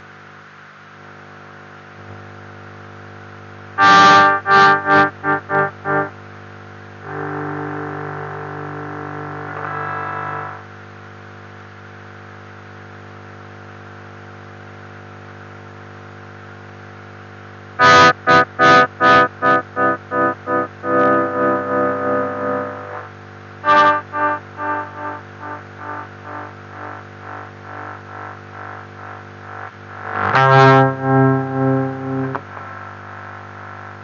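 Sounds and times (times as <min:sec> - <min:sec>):
guitar: 0:03.8 - 0:06.4, 0:07.0 - 0:10.6, 0:17.8 - 0:32.8.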